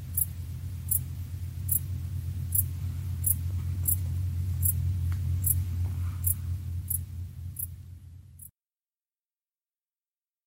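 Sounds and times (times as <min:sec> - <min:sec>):
wild crickets chirping: 0:00.0 - 0:07.8.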